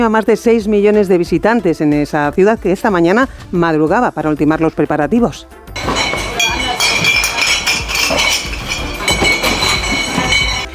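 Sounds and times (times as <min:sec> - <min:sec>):
speech: 0:00.0 - 0:05.8
glass bottles clinking inside bar counters readied for Oktoberfest in Munich: 0:05.8 - 0:10.7.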